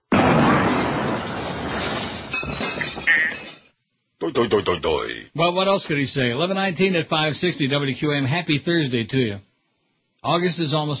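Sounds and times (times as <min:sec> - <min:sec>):
jacket set on fire whooshing and roaring: 0:00.0 - 0:02.4
speech: 0:04.3 - 0:09.5, 0:10.2 - 0:10.9.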